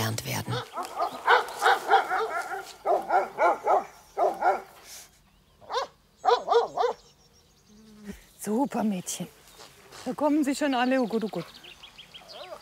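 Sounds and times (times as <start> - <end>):
livestock guardian dogs barking: 0.4 - 4.8, 5.6 - 7.1
speech: 8.6 - 9.4, 10.0 - 11.6.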